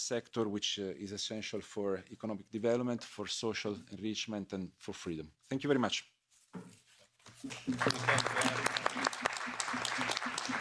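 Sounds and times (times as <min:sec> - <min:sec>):
speech: 0:00.0 - 0:08.8
applause: 0:07.4 - 0:10.5.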